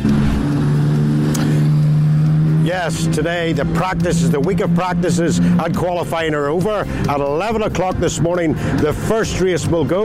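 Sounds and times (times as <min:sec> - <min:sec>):
racing motorbike engines on the Isle of Man TT mountain course: 0:00.0 - 0:10.0
speech: 0:02.8 - 0:10.0.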